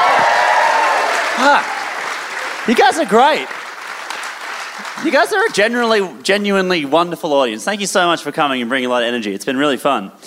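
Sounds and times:
audience applause: 0.0s - 6.1s
speech: 1.4s - 1.7s, 2.6s - 3.6s, 4.8s - 10.2s.

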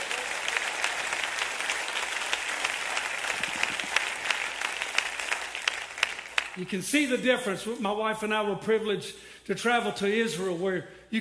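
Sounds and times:
crowd clapping hands: 0.0s - 6.7s
speech: 6.6s - 11.1s.

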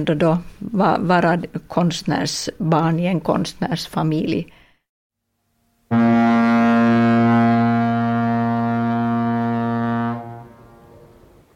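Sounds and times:
speech: 0.0s - 4.6s
steamboat horn: 5.8s - 11.5s.

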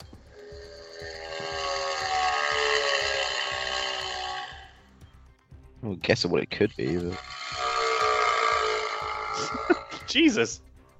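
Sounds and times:
motorbike engine droning: 0.0s - 5.2s, 6.8s - 10.1s
speech: 5.8s - 7.3s, 9.4s - 10.6s.

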